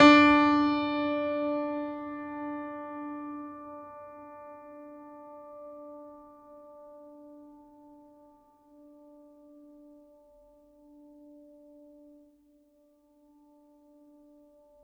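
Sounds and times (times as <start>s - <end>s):
classical piano note D3: 0.0s - 9.2s.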